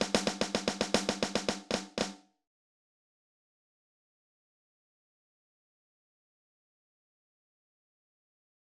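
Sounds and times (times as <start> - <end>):
snare drum etude: 0.0 - 2.2.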